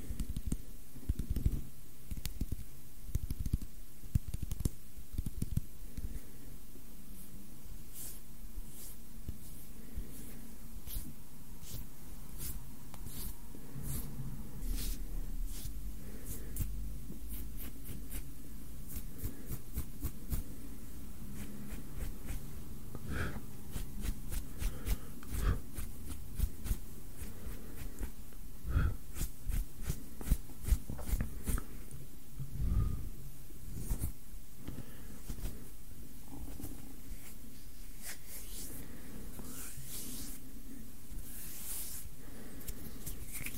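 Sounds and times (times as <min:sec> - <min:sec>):
constant faint hiss: 0:00.0 - 0:43.5
hand sounds rubbing and brushing close to the microphone: 0:07.1 - 0:20.5, 0:21.3 - 0:22.5, 0:23.7 - 0:28.2, 0:29.1 - 0:31.8, 0:33.7 - 0:34.2, 0:35.2 - 0:35.7, 0:36.3 - 0:40.5, 0:41.1 - 0:43.5.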